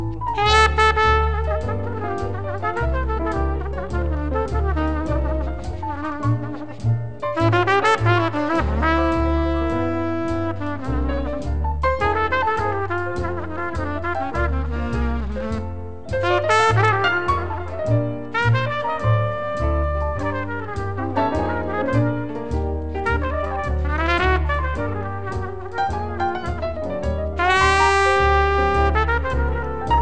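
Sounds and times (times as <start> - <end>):
jazz music: 0.0 - 29.9.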